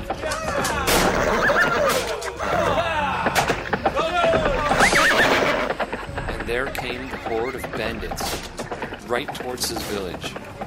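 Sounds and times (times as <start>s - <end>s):
horse hooves thundering on ground: 0.0s - 10.6s
wordless voices crying out: 0.1s - 6.0s
horses whinnying: 0.2s - 7.5s
speech: 9.1s - 10.5s.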